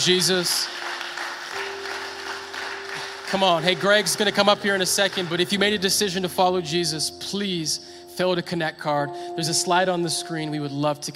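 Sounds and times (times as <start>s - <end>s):
speech: 0.0s - 0.8s, 3.3s - 11.1s
audience clapping hands: 0.0s - 6.0s.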